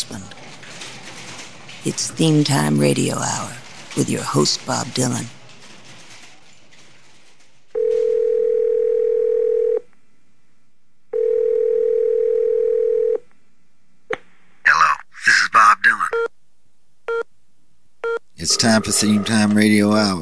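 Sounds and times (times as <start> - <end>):
speech: 1.8 - 5.4, 18.4 - 20.2
telephone dial tone: 7.8 - 9.8, 11.2 - 13.2
garbled voice-like sounds: 14.7 - 16.2, 18.4 - 20.2.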